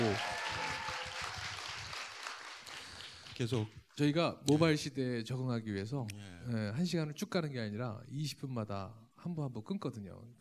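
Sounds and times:
applause: 0:00.0 - 0:03.7
speech: 0:03.4 - 0:10.3.

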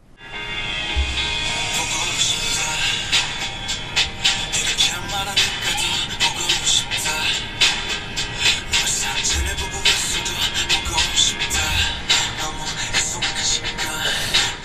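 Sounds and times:
K-pop song intro: 0:00.3 - 0:14.6
deep low thumps: 0:00.9 - 0:01.7, 0:09.3 - 0:09.8.

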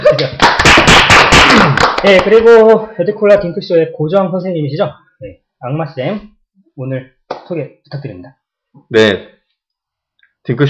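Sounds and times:
few people applauding: 0:00.0 - 0:02.5
speech: 0:00.1 - 0:00.4, 0:01.6 - 0:09.3, 0:10.4 - 0:10.6.

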